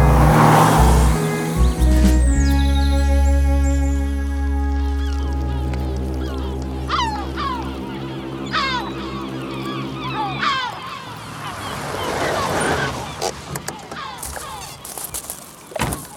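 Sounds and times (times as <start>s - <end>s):
low steady engine drone: 0.0s - 12.0s
sea noise: 0.0s - 16.1s
seagulls calling by the sea: 0.3s - 16.1s.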